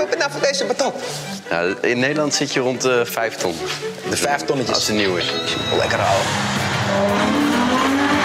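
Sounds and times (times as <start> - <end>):
speech: 0.3 - 7.5
Ferrari sports car engine roaring: 5.8 - 8.2.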